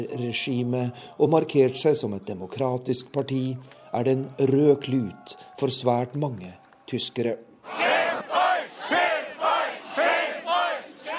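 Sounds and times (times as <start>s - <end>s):
speech: 0.0s - 7.9s
protesters chanting in Erfurt: 7.6s - 11.1s.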